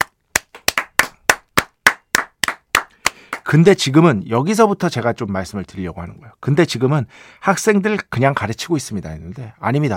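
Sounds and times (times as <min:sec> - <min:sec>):
hand clapping: 0:00.0 - 0:03.6
speech: 0:03.5 - 0:09.9.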